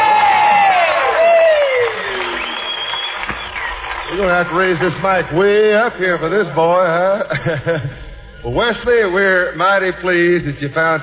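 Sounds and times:
long falling whoop: 0.0 - 2.6
Grand Ole Opry crowd cheering in welcome of a performer: 0.0 - 6.3
speech: 4.3 - 11.0
laughter: 7.0 - 8.3.

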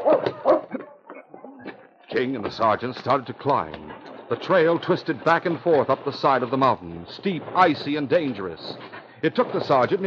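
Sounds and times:
dogs barking in the distance: 0.0 - 2.1
speech: 2.1 - 10.0.

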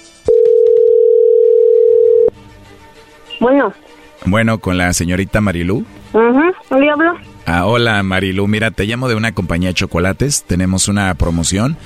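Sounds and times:
telephone ringing tone while call dials: 0.3 - 2.3
speech: 3.4 - 11.8.

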